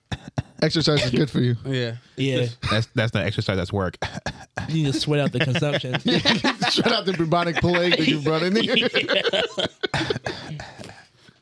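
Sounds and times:
cough: 0.0 - 1.2
speech: 0.6 - 10.8
laughter: 4.6 - 11.0.

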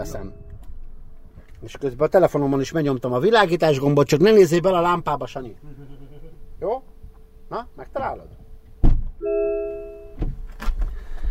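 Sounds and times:
speech: 0.0 - 0.4, 1.6 - 6.0, 7.5 - 8.4, 9.2 - 9.9
car door-open warning chime: 0.0 - 0.6, 9.2 - 10.3
mechanical clunks and rustles: 8.7 - 9.2, 10.2 - 11.2
dull thunk: 8.8 - 9.2.

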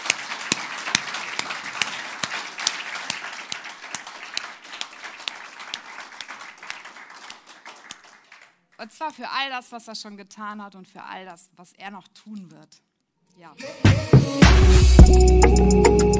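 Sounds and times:
crowd applauding: 0.0 - 8.6
speech: 8.8 - 16.1.

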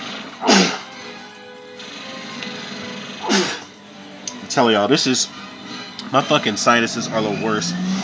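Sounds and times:
sneeze: 0.5 - 0.8
speech: 4.5 - 5.5, 6.1 - 8.0.

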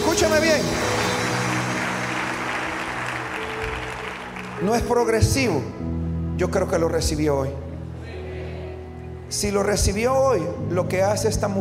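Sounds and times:
crowd clapping loudly: 0.0 - 5.2
speech: 0.2 - 1.0, 4.6 - 7.7, 9.3 - 11.5.

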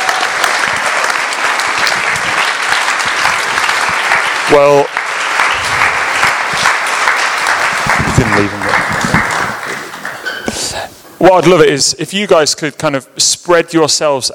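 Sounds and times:
audience applause: 0.0 - 11.4
speech: 4.5 - 5.0, 11.2 - 14.3.

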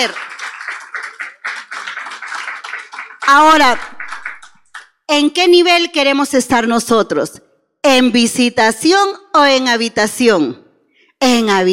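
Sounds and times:
speech: 0.0 - 0.3, 3.3 - 4.0, 5.1 - 10.6, 11.3 - 11.7
audience clapping: 0.0 - 5.0.

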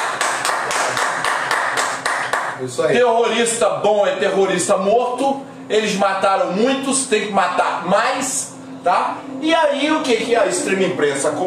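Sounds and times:
crowd applause: 0.0 - 2.5
speech: 2.6 - 11.4.

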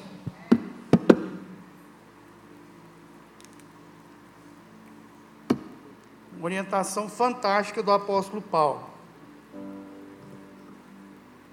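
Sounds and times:
plastic clicks opening a water bottle: 3.4 - 3.7
speech: 6.4 - 8.9.

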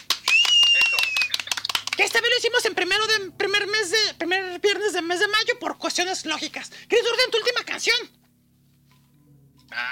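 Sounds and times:
brisk applause: 0.0 - 2.2
speech: 2.0 - 8.2.

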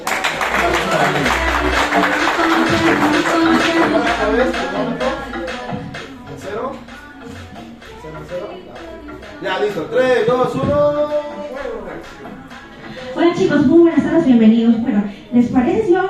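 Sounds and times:
audience applause: 0.0 - 4.1
speech: 0.9 - 5.1, 9.4 - 16.0.

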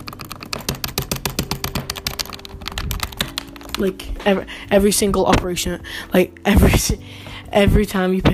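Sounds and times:
rapid tapping on game controller buttons: 0.0 - 4.0
speech: 3.8 - 8.3.

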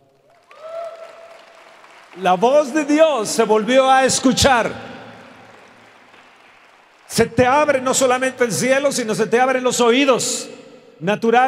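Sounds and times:
applause: 0.0 - 9.0
speech: 2.1 - 4.9, 7.2 - 11.4.

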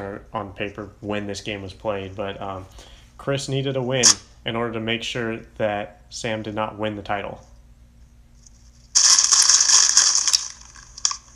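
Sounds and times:
speech: 0.0 - 7.5
crunching cheese puff snacks: 9.0 - 11.3.

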